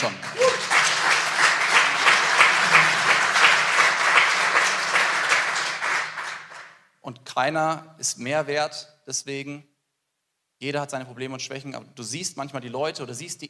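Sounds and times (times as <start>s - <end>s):
audience applause: 0.0s - 6.7s
speech: 7.4s - 9.7s, 10.6s - 13.4s.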